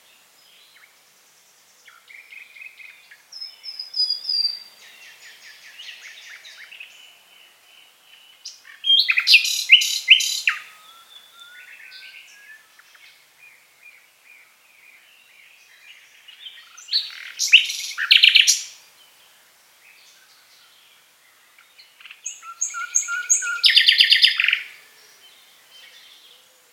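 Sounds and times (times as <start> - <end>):
Common nightingale song: 0.0 - 26.7.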